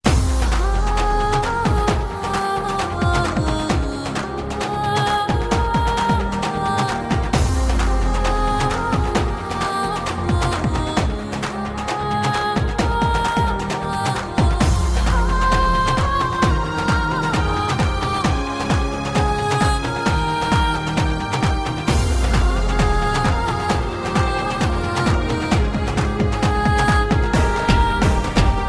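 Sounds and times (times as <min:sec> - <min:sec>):
instrumental music: 0:00.0 - 0:28.6.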